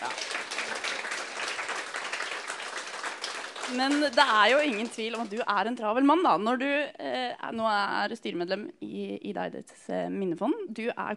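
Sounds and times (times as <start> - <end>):
audience applause: 0.0 - 5.4
speech: 3.7 - 11.1.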